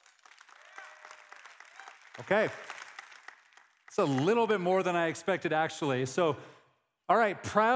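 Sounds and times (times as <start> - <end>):
audience applause: 0.0 - 5.0
speech: 2.2 - 2.7, 4.0 - 7.7.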